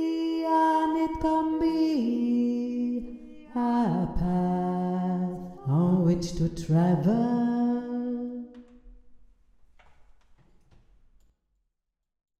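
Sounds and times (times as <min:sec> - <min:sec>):
deep voice: 0:00.0 - 0:08.4.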